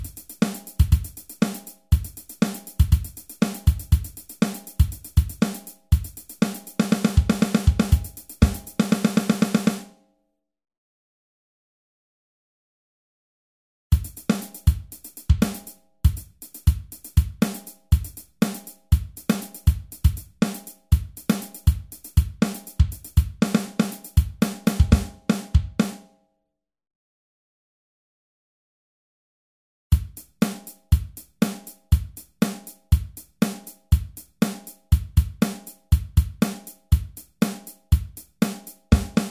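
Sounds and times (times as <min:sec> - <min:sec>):
drums: 0:00.0 - 0:09.9, 0:13.9 - 0:26.1, 0:29.9 - 0:39.2.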